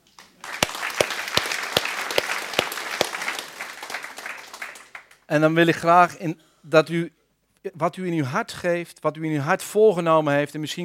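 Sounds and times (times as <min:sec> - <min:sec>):
audience applause: 0:00.4 - 0:05.2
speech: 0:05.3 - 0:10.8.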